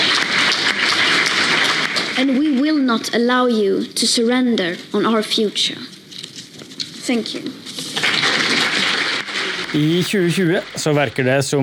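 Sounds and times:
crowd applause in a hall: 0:00.0 - 0:02.5, 0:07.9 - 0:11.6
speech: 0:02.2 - 0:06.0, 0:07.1 - 0:07.6, 0:09.7 - 0:11.6.

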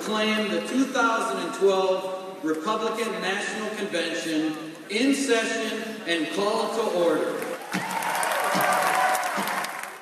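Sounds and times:
speech: 0:00.1 - 0:08.7
Republican convention audience applauding enthusiastically: 0:07.4 - 0:09.9.

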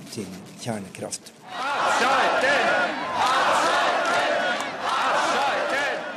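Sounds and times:
speech: 0:00.2 - 0:03.4
large crowd of protesters chanting: 0:01.4 - 0:06.1.

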